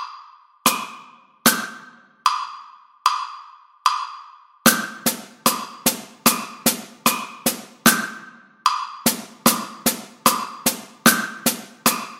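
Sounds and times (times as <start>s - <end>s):
drum set: 0.7s - 1.9s, 4.7s - 12.1s.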